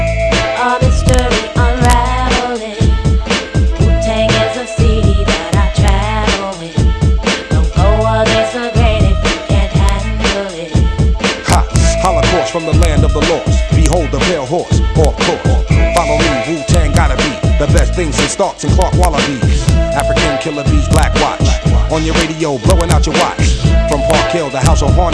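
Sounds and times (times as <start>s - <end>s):
hip hop music: 0.0s - 25.1s.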